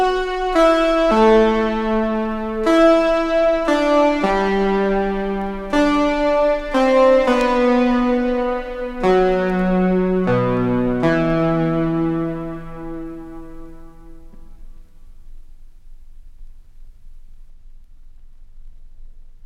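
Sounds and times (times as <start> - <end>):
dramatic solo melody: 0.0 - 14.4.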